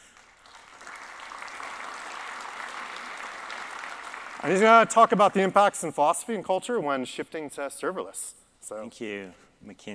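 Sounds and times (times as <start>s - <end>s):
audience applause: 0.0s - 5.2s
speech: 4.4s - 9.9s.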